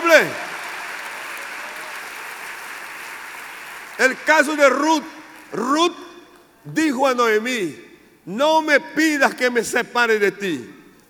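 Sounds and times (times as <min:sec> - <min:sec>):
audience applauding loudly: 0:00.0 - 0:05.6
speech: 0:00.1 - 0:00.5, 0:04.0 - 0:10.8.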